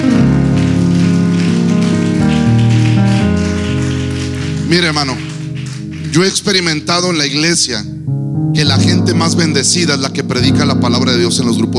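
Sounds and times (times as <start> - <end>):
audience applause: 0.0 - 7.4
sustained keyboard chords: 0.0 - 11.7
speech: 4.7 - 5.3, 6.1 - 8.0, 8.6 - 11.7.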